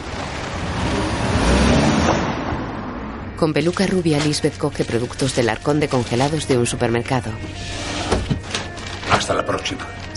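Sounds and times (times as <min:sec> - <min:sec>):
car driving away: 0:00.0 - 0:03.4
speech: 0:03.4 - 0:08.1, 0:09.2 - 0:10.1.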